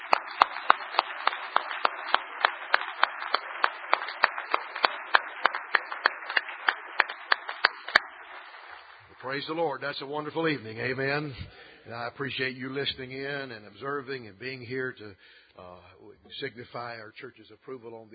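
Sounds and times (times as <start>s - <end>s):
church congregation clapping for newly ordained men: 0.0s - 11.7s
speech: 9.2s - 18.1s.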